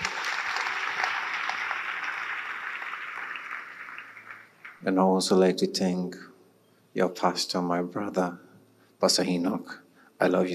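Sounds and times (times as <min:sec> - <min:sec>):
audience applause: 0:00.0 - 0:05.0
speech: 0:04.8 - 0:06.3, 0:07.0 - 0:08.4, 0:09.0 - 0:10.5.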